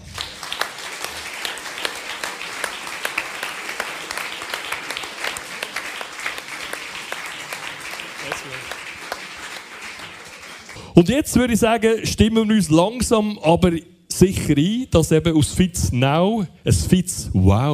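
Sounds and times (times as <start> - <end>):
audience applause welcoming a performer at a live show: 0.0 - 11.0
speech: 11.0 - 17.7.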